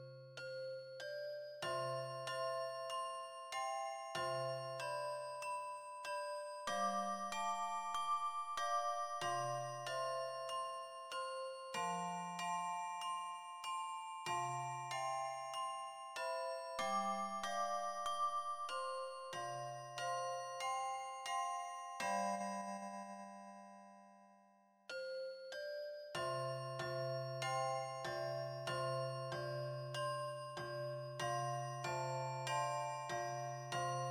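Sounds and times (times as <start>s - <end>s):
two-octave handbells with bass playing a simple arrangement: 0.5s - 23.8s, 24.9s - 34.1s.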